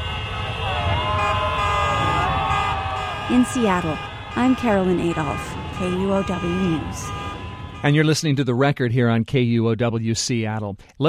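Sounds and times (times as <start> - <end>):
motorcycle horns blaring as a parade starts: 0.0 - 8.0
speech: 3.3 - 7.2, 7.8 - 11.0.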